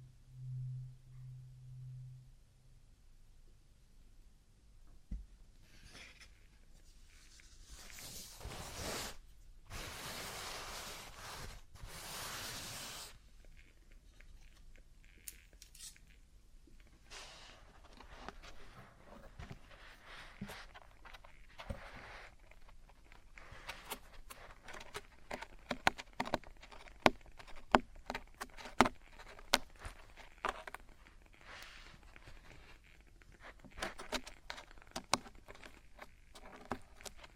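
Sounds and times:
low hum: 0.0 - 3.0
traditional Chinese ear cleaning and earwax removal scraping: 7.1 - 16.2, 16.8 - 37.3.

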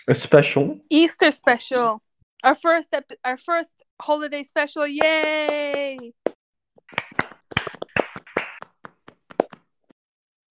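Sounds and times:
speech: 0.0 - 6.3
soft muffled hand clapping: 5.0 - 9.6.

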